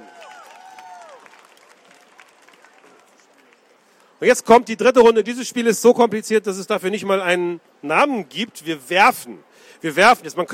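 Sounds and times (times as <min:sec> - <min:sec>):
whistles and cheers: 0:00.0 - 0:01.3
audience applause: 0:00.0 - 0:03.7
speech: 0:04.2 - 0:10.5.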